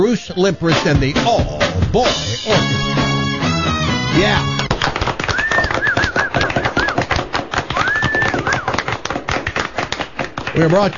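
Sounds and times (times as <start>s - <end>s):
speech: 0.1s - 3.0s, 4.2s - 4.6s, 10.6s - 10.9s
audience applause: 4.6s - 10.9s.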